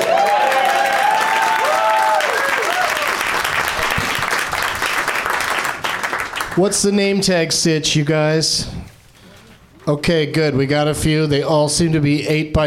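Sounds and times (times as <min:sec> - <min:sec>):
whoops and cheers: 0:00.0 - 0:03.3
crowd applauding: 0:00.0 - 0:06.6
speech: 0:06.6 - 0:08.8, 0:09.9 - 0:12.6.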